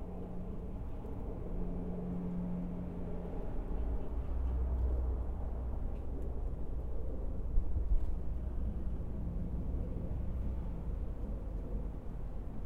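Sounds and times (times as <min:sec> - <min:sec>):
low rumble of passing traffic: 0:00.0 - 0:12.6.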